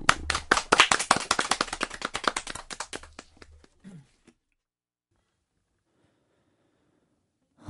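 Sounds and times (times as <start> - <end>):
audience clapping: 0.0 - 3.8.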